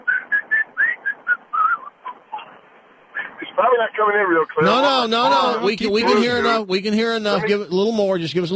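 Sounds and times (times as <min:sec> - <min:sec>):
person whistling a birdlike warble: 0:00.0 - 0:02.0
speech: 0:03.6 - 0:08.5.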